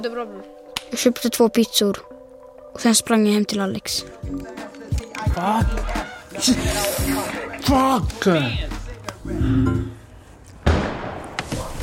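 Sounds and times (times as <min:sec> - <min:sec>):
speech: 0:00.0 - 0:02.2, 0:02.8 - 0:04.6, 0:05.3 - 0:10.0
firecracker bang: 0:10.6 - 0:11.7.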